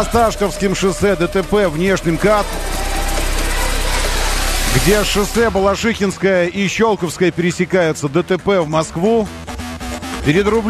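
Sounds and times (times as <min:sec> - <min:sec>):
speech: 0:00.0 - 0:02.8, 0:04.7 - 0:09.5, 0:10.2 - 0:10.6
Jeep Cherokee engine idling: 0:00.0 - 0:05.9.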